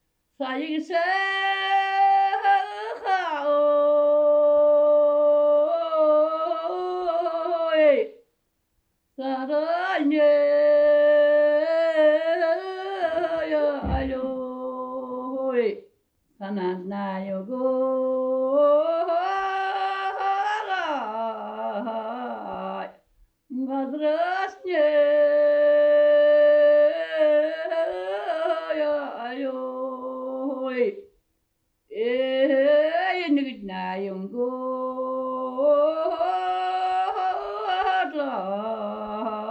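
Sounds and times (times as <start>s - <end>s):
person singing: 0.4s - 8.1s, 9.2s - 15.8s, 16.4s - 31.0s, 31.9s - 39.4s.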